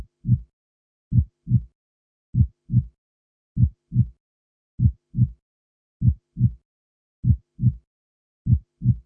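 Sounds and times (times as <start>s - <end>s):
several heartbeats: 0.0s - 0.5s, 1.1s - 1.7s, 2.4s - 3.0s, 3.6s - 4.2s, 4.8s - 5.4s, 6.0s - 6.6s, 7.2s - 7.8s, 8.4s - 9.0s.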